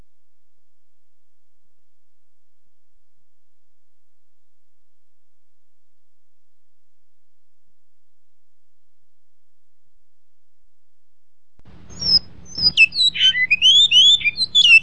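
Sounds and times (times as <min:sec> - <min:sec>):
great-billed seed finch whistling song with buzzy rattle: 0:11.9 - 0:14.8.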